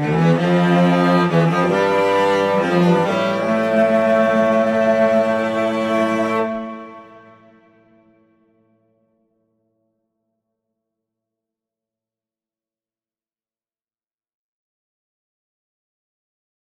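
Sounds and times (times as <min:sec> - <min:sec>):
instrumental music: 0:00.0 - 0:08.9.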